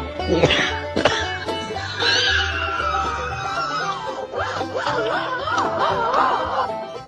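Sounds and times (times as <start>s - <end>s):
laughter: 0.2s - 7.0s
person coughing: 0.4s - 1.3s.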